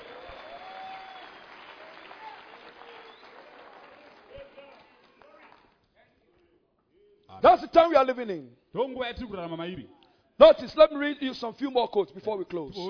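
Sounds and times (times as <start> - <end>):
scattered voices and cheers: 0.0 - 5.6
audience applause: 0.0 - 5.8
speech: 7.4 - 12.8.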